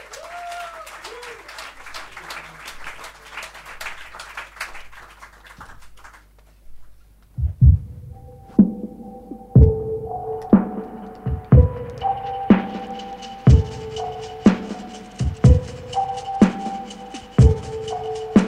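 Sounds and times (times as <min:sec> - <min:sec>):
audience applauding: 0:00.0 - 0:06.4
low heavy thumps: 0:07.4 - 0:09.0, 0:09.6 - 0:12.7
sustained electronic tones: 0:08.0 - 0:18.4.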